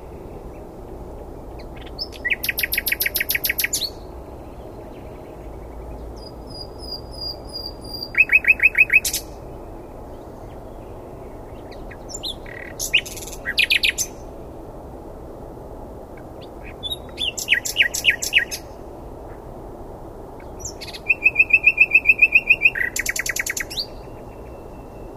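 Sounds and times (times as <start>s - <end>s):
Common nightingale singing: 1.5s - 14.2s, 16.2s - 18.8s, 20.4s - 25.1s.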